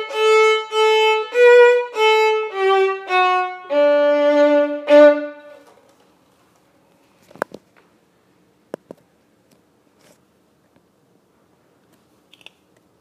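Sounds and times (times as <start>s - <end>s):
violin playing: 0.0s - 5.6s.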